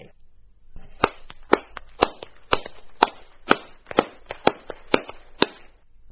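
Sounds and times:
crowd clapping hands: 1.0 - 5.6.

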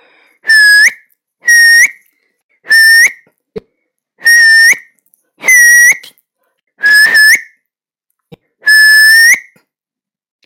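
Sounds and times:
loud finger whistle: 0.4 - 3.3, 4.2 - 6.2, 6.8 - 7.6, 8.6 - 9.7.

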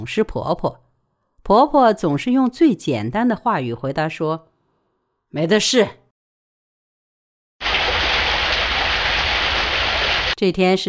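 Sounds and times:
speech: 0.0 - 0.8, 1.4 - 4.5, 5.3 - 6.0, 10.4 - 10.8
steady rain: 7.6 - 10.4.

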